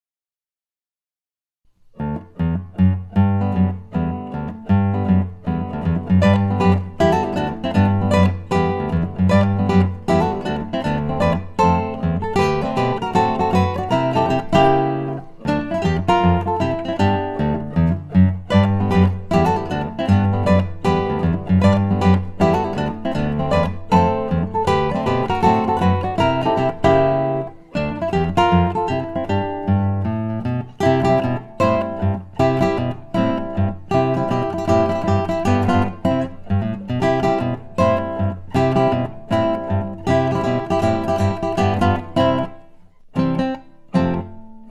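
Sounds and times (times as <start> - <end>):
guitar: 1.7 - 44.6.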